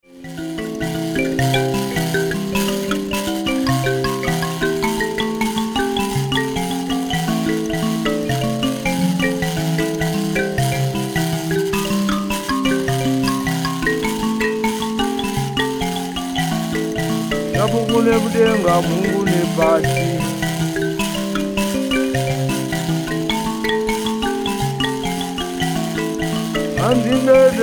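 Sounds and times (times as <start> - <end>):
mbira: 0.0 - 27.6.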